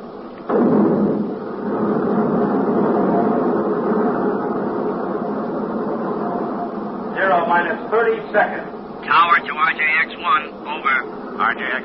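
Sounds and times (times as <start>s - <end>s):
left jet engine starting up: 0.4s - 8.5s
speech: 7.6s - 11.8s.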